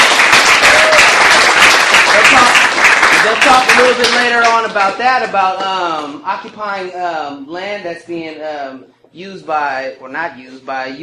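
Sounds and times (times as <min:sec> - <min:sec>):
audience applause for members of Occupy the Farm at a gathering: 0:00.0 - 0:05.0
speech: 0:03.2 - 0:11.0.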